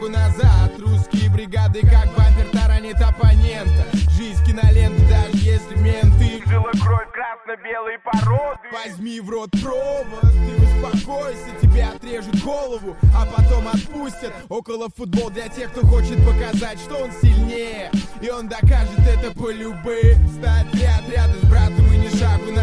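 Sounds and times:
bass: 0:00.0 - 0:07.1, 0:08.2 - 0:08.5, 0:10.2 - 0:12.1, 0:13.0 - 0:13.8, 0:15.8 - 0:17.6, 0:18.6 - 0:22.6.

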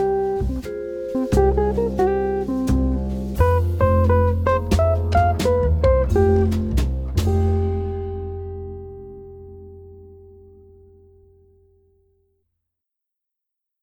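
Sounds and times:
jazz band playing: 0:00.0 - 0:09.9.

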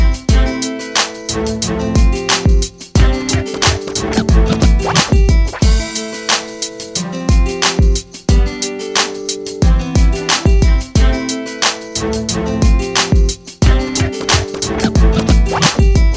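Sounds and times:
guitar: 0:00.0 - 0:16.1
beat: 0:03.0 - 0:07.6, 0:13.2 - 0:16.1.

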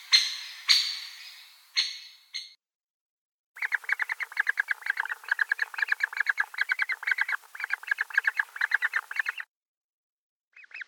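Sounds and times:
great spotted woodpecker drumming: 0:00.0 - 0:02.5, 0:03.6 - 0:09.4.

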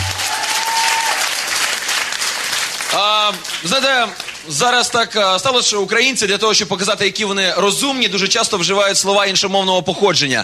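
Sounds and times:
audience applause: 0:00.0 - 0:04.5
speech: 0:03.0 - 0:10.4.

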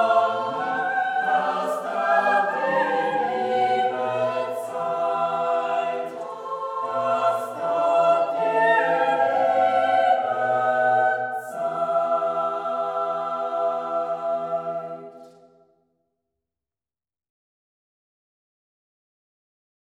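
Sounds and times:
choir singing German Christmas song: 0:00.0 - 0:15.7.

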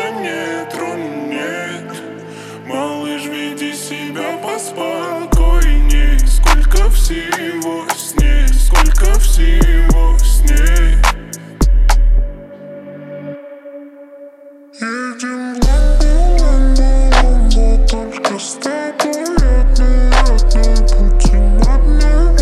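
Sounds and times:
37-39-41 Hz low bass tone: 0:05.4 - 0:07.3, 0:08.2 - 0:12.4, 0:15.6 - 0:18.0, 0:19.4 - 0:22.4.

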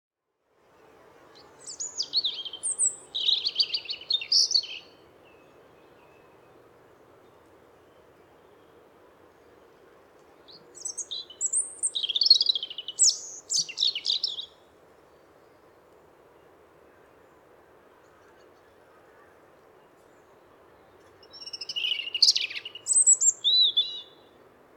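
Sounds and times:
European robin singing: 0:01.4 - 0:06.4, 0:10.5 - 0:14.6, 0:20.8 - 0:24.4.

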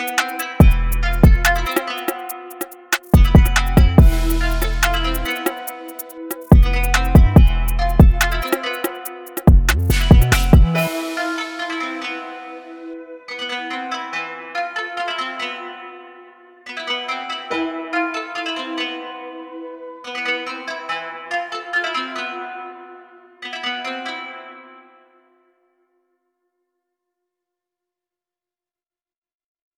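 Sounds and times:
UK drill music: 0:00.0 - 0:13.0.

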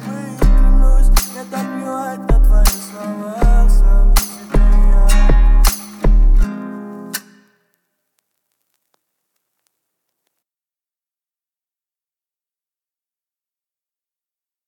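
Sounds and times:
33 35 37 Hz low bass tones: 0:00.4 - 0:01.2, 0:02.3 - 0:02.7, 0:03.4 - 0:06.4.

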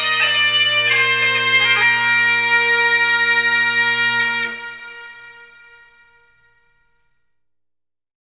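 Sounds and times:
Highland bagpipes playing: 0:00.0 - 0:06.3.

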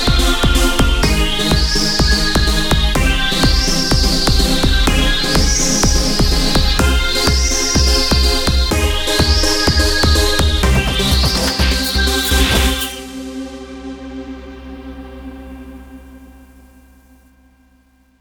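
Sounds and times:
swing music: 0:00.0 - 0:13.2.

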